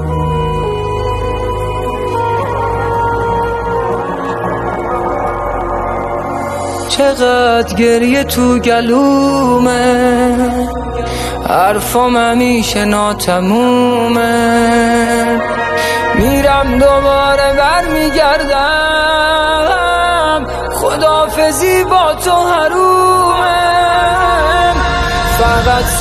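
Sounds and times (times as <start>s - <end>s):
studio Persian religious eulogy chanting: 0.1s - 25.9s.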